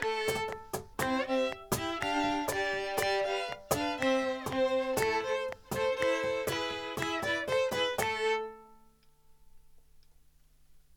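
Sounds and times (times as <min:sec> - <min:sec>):
cajon play-along: 0:00.0 - 0:08.6.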